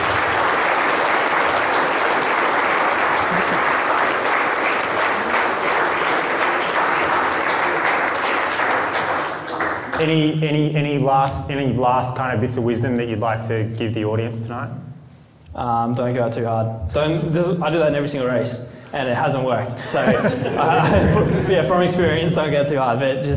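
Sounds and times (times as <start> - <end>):
audience applause: 0.0 - 10.0
laughter: 3.0 - 4.0, 19.8 - 22.4
speech: 10.0 - 14.8, 15.6 - 23.3.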